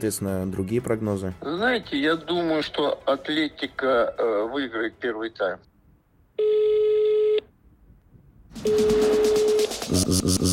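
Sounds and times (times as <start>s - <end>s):
speech: 0.0s - 5.7s, 8.6s - 9.3s, 9.9s - 10.5s
telephone ringing tone: 6.4s - 7.4s, 8.6s - 9.8s
rhythmic music-like pattern: 8.6s - 10.5s.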